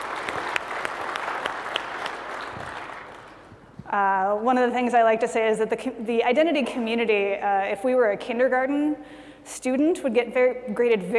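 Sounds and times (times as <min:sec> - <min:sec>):
crowd applauding: 0:00.0 - 0:03.6
speech: 0:03.9 - 0:11.1.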